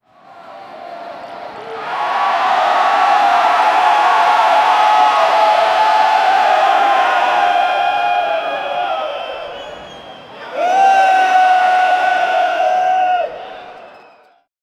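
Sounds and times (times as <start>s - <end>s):
paparazzi and fans around a celebrity: 0.1s - 14.5s.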